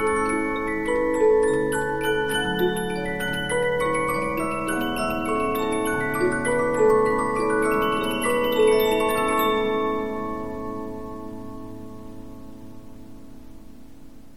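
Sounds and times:
Polyphon 15-inch disc music box playing: 0:00.0 - 0:10.9.

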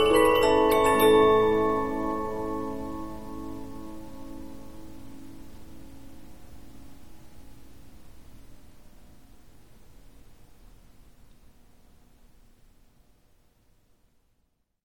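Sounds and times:
Polyphon 15-inch disc music box playing: 0:00.0 - 0:04.0.

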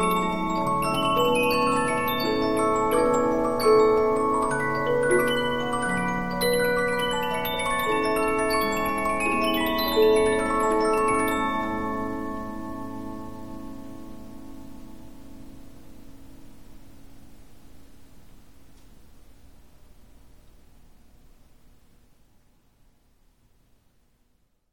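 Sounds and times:
Polyphon 15-inch disc music box playing: 0:00.0 - 0:13.4.

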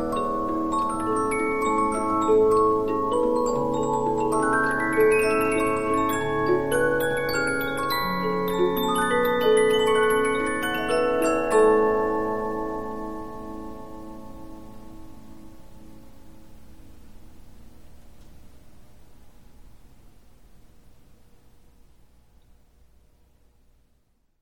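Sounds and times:
15-inch Polyphon music box playing: 0:00.0 - 0:15.2.

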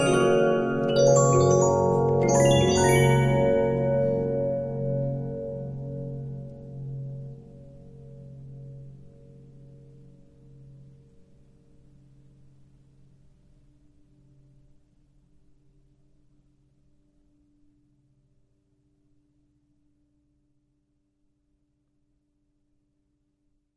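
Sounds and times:
Regina 15-inch disc music box: 0:00.0 - 0:05.5.

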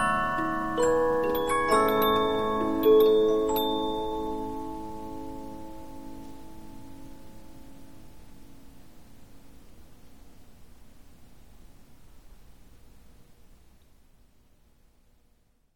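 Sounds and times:
Polyphon 15-inch disc music box playing: 0:00.0 - 0:07.4.

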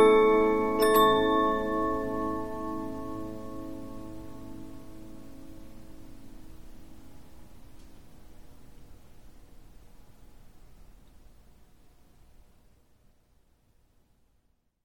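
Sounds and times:
Polyphon 15-inch disc music box playing: 0:00.0 - 0:04.2.

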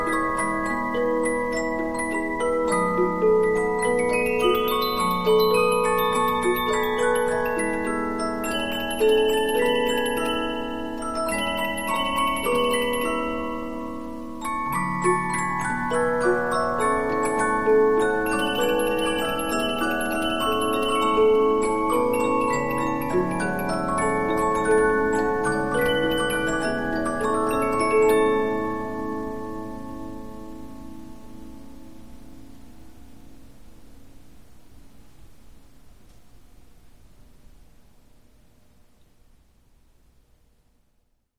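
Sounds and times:
Polyphon 15-inch disc music box playing: 0:00.0 - 0:30.8.

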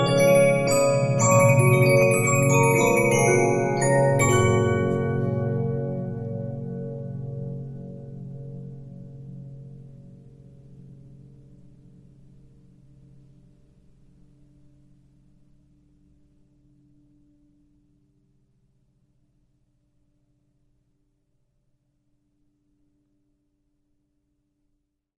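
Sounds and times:
Regina 15-inch disc music box: 0:00.0 - 0:06.6.

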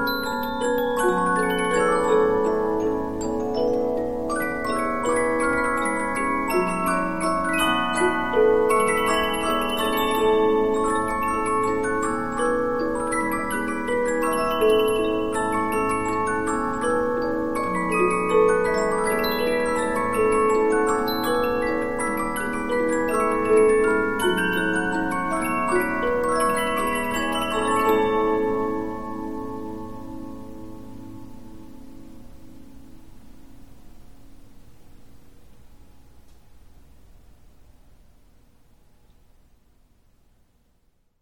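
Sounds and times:
Polyphon 15-inch disc music box playing: 0:00.0 - 0:30.1.

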